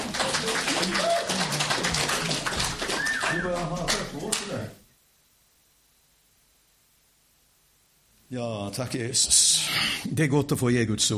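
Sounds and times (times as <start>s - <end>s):
audience applause: 0.0s - 4.6s
speech: 8.3s - 11.1s.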